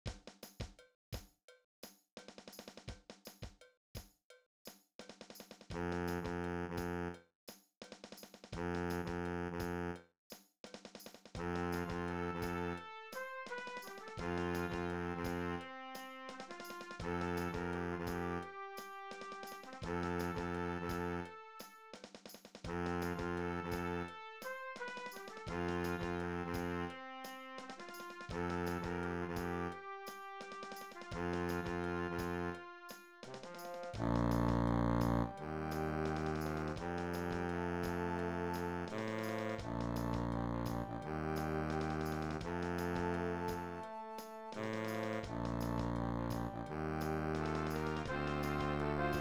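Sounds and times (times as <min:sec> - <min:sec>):
low tuba playing a wedding march: 0:05.7 - 0:07.2, 0:08.6 - 0:10.0, 0:11.4 - 0:22.0, 0:22.7 - 0:49.1.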